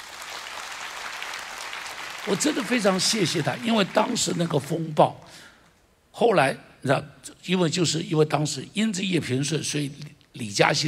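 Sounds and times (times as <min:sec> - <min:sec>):
audience applause: 0:00.0 - 0:04.9
speech: 0:02.3 - 0:05.5, 0:06.2 - 0:10.8.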